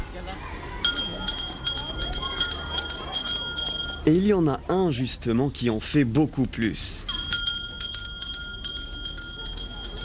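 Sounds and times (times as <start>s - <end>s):
bell rung to end recess at a school for refugee children in Jordan: 0.8s - 4.4s, 7.0s - 10.0s
speech: 4.0s - 7.1s.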